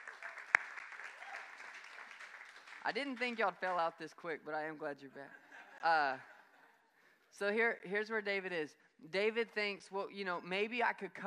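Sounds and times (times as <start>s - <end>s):
audience applause: 0.0s - 3.0s
speech: 2.8s - 6.3s, 7.4s - 11.2s.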